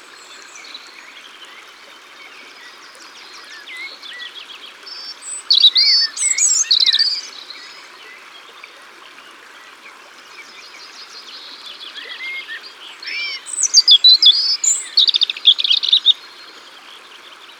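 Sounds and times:
European robin singing: 4.9 - 7.7, 11.8 - 16.2.

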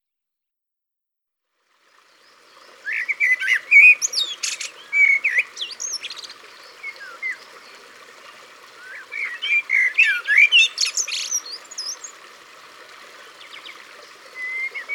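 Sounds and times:
Common blackbird song: 2.1 - 7.8, 8.8 - 12.2, 13.2 - 14.9.

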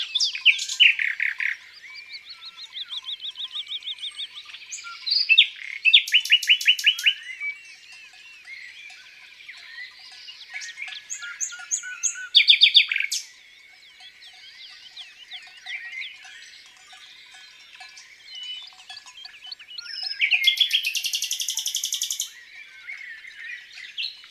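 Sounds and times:
chorus of other birds: 0.0 - 24.2
common nightingale singing: 0.0 - 24.2.

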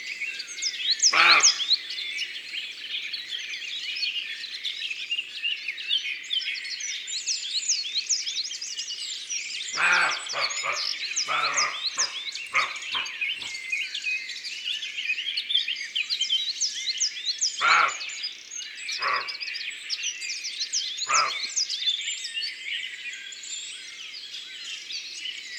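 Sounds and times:
songbird chorus: 0.0 - 25.5
roe deer barking: 1.1 - 1.6, 9.8 - 13.5, 17.6 - 18.1, 19.0 - 19.4, 21.1 - 21.5
speech: 1.2 - 1.6.

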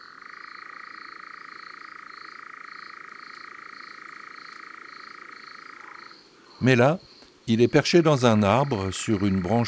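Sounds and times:
European nightjar churring trill: 6.6 - 9.6
speech: 6.6 - 9.6.

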